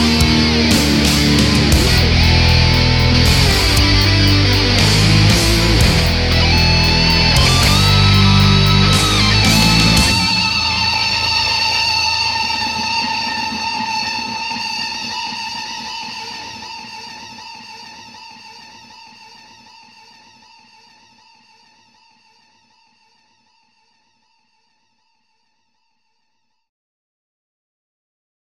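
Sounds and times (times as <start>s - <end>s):
wrestling rock music with lead: 0.0s - 17.4s.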